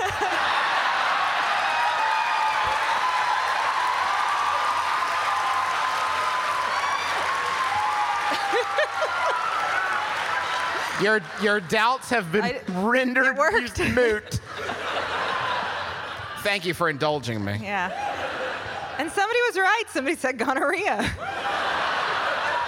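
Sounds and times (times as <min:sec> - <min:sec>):
laughter: 0:00.0 - 0:01.4, 0:07.9 - 0:17.1, 0:17.8 - 0:19.5, 0:20.6 - 0:22.6
whoops: 0:00.0 - 0:10.9
rhythmic group clapping: 0:00.0 - 0:11.9
speech: 0:11.0 - 0:14.8, 0:16.4 - 0:18.0, 0:19.0 - 0:21.6.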